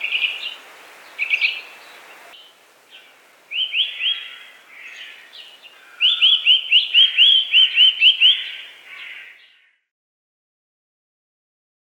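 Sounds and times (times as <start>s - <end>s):
Eurasian nuthatch calling with short whistled notes: 0.0s - 1.8s, 3.5s - 9.3s.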